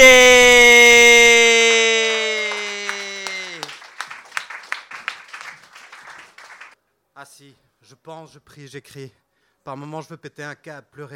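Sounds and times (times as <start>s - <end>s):
audience cheering: 0.0s - 6.8s
audience clapping: 1.9s - 6.8s
speech: 7.4s - 11.1s.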